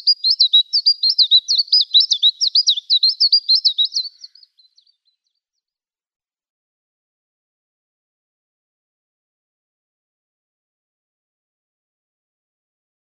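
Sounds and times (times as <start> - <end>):
Siberian Chiffchaff singing: 0.0 - 4.1.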